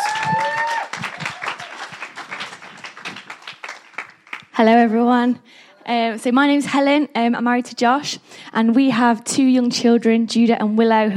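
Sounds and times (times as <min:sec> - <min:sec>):
crowd applause: 0:00.0 - 0:04.5
speech: 0:04.6 - 0:11.1.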